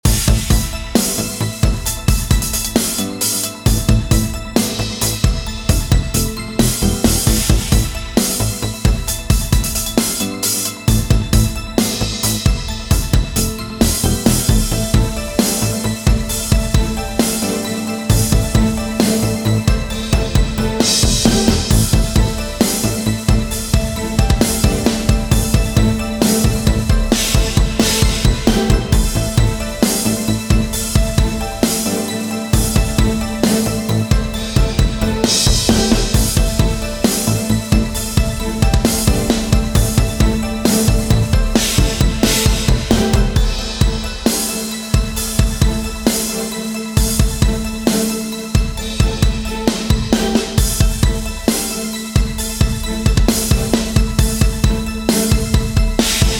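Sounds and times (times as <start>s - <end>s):
menu music loop: 0.0s - 56.3s.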